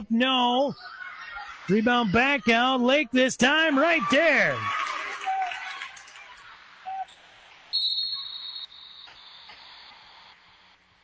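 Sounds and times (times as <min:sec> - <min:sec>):
speech: 0:00.0 - 0:01.0, 0:01.7 - 0:05.0
crowd noise: 0:00.0 - 0:11.0
referee's whistle during basketball game: 0:06.9 - 0:10.2.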